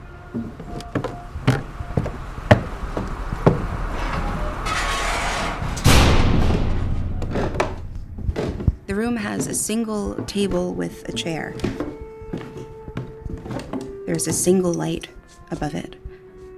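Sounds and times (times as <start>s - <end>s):
heavy sidewalk cellar door creaking: 0.5s - 9.7s
low rumble: 2.7s - 9.8s
sidewalk cellar door shutting with thud: 5.6s - 8.8s
speech: 9.0s - 11.8s, 14.1s - 16.0s.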